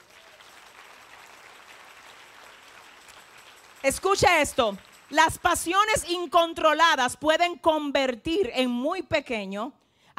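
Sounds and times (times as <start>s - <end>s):
audience applause: 0.0s - 3.9s
speech: 3.8s - 9.8s.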